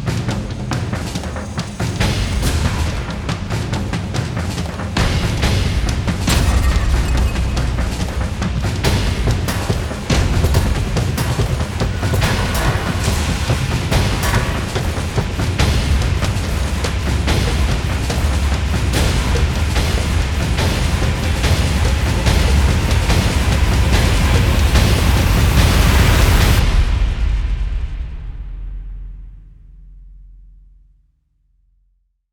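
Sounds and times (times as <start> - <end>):
drum mix: 0.0 - 30.9.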